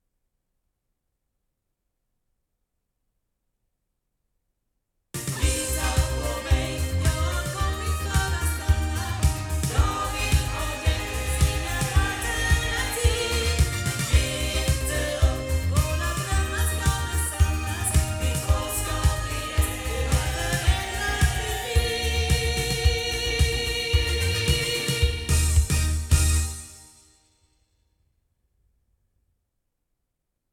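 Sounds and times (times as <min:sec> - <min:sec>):
loudspeakers: 0:05.2 - 0:26.3.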